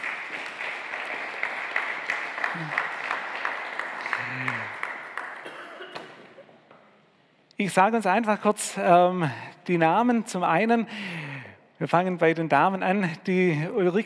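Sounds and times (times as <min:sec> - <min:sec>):
audience applause: 0:00.0 - 0:05.6
speech: 0:07.6 - 0:11.2, 0:11.8 - 0:14.0.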